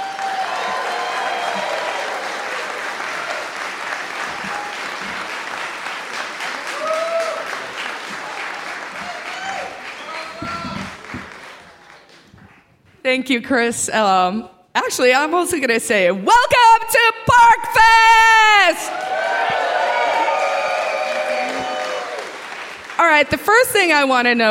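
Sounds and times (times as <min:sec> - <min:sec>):
audience applause: 0:00.0 - 0:12.5, 0:18.8 - 0:23.3
speech: 0:13.1 - 0:19.0, 0:23.1 - 0:24.4.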